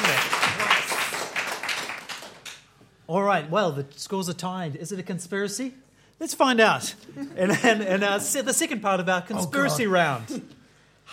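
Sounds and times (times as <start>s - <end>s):
round of applause: 0.0s - 2.7s
speech: 3.1s - 11.1s.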